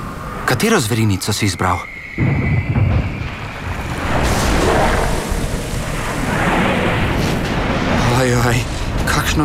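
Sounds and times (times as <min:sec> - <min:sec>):
speech: 0:00.5 - 0:02.3
ocean surf breaking near the shore: 0:03.2 - 0:09.4.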